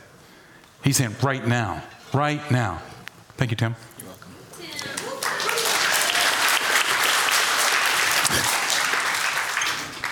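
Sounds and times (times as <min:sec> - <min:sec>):
speech: 0:00.8 - 0:04.0
audience applause: 0:05.0 - 0:10.1.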